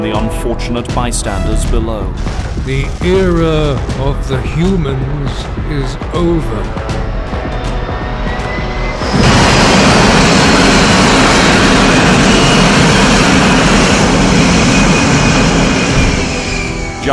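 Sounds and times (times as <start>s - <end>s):
speech: 0.3s - 7.0s
jet aircraft touching down with loud engine roar: 1.4s - 17.1s
thin high-pitched jet engine whine: 6.7s - 17.1s.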